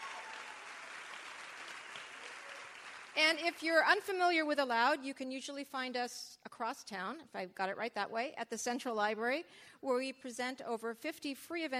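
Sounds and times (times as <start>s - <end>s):
audience applause: 0.0s - 3.2s
speech: 3.2s - 11.7s.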